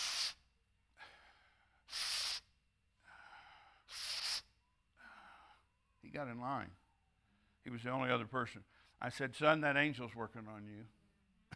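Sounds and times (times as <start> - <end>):
man imitating the labored breathing of a ten-year-old boy: 0.0 - 0.4, 1.0 - 5.5
speech: 6.2 - 6.8, 7.6 - 11.0.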